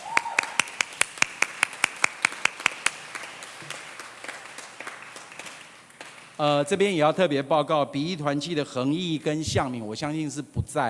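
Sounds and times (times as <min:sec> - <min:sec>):
audience clapping hands: 0:00.0 - 0:06.5
speech: 0:06.4 - 0:10.8.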